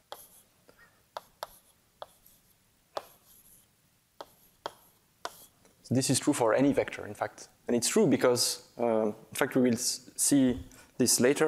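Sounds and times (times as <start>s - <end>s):
handwriting scratches and taps writing out a conservation-law equation: 0.0s - 0.4s, 1.1s - 5.6s
speech: 5.9s - 11.4s.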